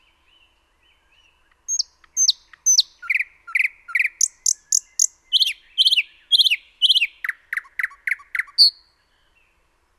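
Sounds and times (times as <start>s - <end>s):
common nightingale singing: 0.0s - 9.7s.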